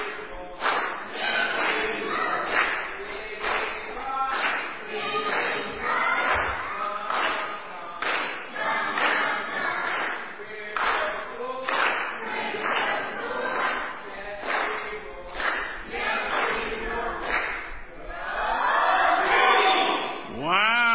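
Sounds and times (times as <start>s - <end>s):
audience clapping for a team: 0.0s - 17.9s
people cheering: 18.2s - 20.9s.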